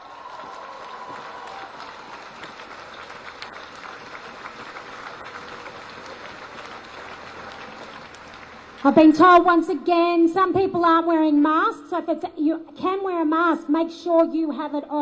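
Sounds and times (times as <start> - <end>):
crowd applause: 0.0 - 9.3
speech: 8.8 - 15.0.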